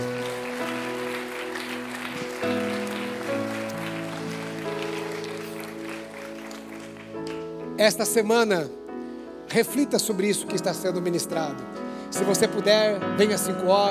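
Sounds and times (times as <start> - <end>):
audience applause: 0.0 - 7.6
sustained keyboard chords: 0.0 - 13.8
speech: 7.8 - 8.8, 9.5 - 13.8.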